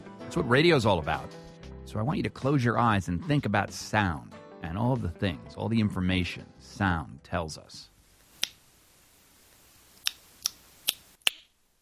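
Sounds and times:
speech: 0:00.3 - 0:07.9
human echolocation sounds made by blind man: 0:08.4 - 0:08.6, 0:10.0 - 0:11.5.

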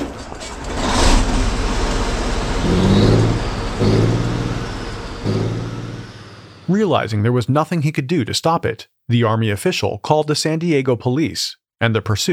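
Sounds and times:
57-ton M60 battle tank engine roaring and revving: 0:00.0 - 0:06.7
speech: 0:06.7 - 0:12.3.

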